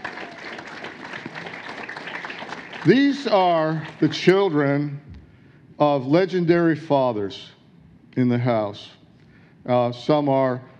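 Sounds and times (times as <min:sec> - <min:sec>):
audience hand clapping: 0:00.0 - 0:04.6
speech: 0:02.8 - 0:05.1, 0:05.8 - 0:07.6, 0:08.2 - 0:09.0, 0:09.6 - 0:10.7.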